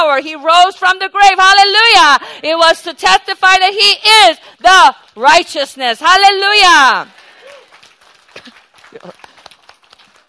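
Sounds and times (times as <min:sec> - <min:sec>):
speech: 0:00.0 - 0:07.2, 0:08.9 - 0:09.3
group of people clapping: 0:06.2 - 0:10.2.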